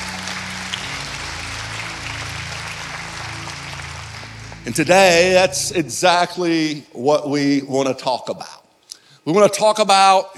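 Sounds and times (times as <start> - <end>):
audience applause: 0.0 - 6.3
speech: 4.6 - 8.6, 9.2 - 10.3.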